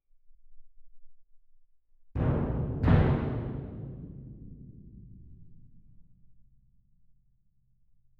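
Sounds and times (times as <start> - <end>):
percussion: 2.2 - 6.4.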